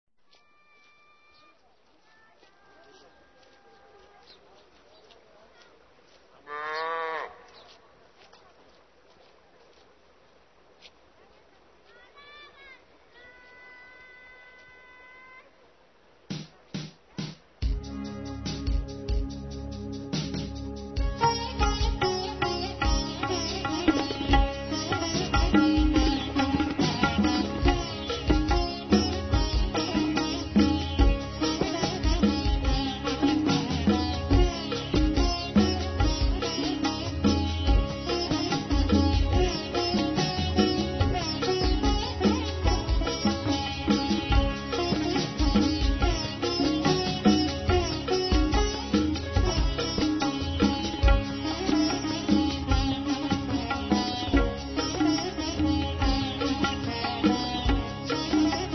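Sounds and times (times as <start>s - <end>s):
fusion raga music: 16.3s - 58.7s.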